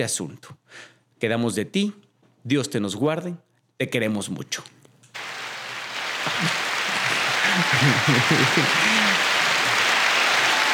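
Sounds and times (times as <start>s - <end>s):
speech: 0.0s - 4.8s, 6.3s - 6.7s, 7.6s - 9.0s
applause: 5.2s - 10.7s
laughter: 5.2s - 10.7s.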